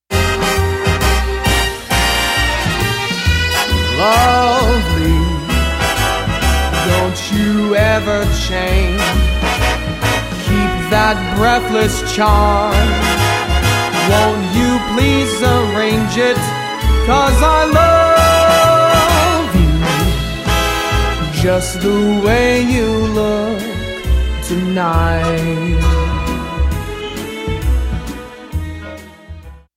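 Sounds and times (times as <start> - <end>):
jazz swooner: 0.1 - 29.7.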